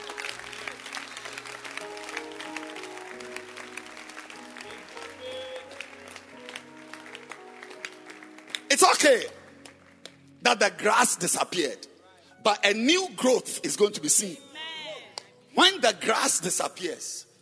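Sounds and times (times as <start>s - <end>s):
church congregation clapping their hands: 0.0s - 11.7s
speech: 8.8s - 9.4s, 10.4s - 14.5s, 15.6s - 17.3s.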